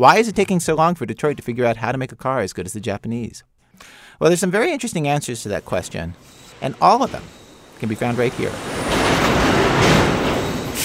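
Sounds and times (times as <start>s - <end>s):
speech: 0.0s - 9.3s
automated machinery in a car assembly plant: 5.2s - 10.8s.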